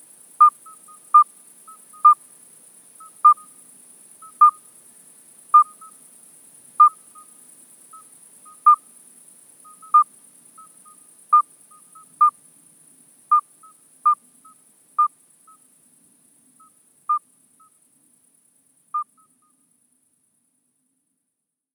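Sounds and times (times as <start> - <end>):
midwife toad Alytes obstetricans calling: 0.4 - 2.3, 3.0 - 3.6, 4.2 - 4.7, 5.5 - 6.0, 6.8 - 8.9, 9.6 - 12.4, 13.3 - 15.6, 16.6 - 17.8, 18.9 - 19.6.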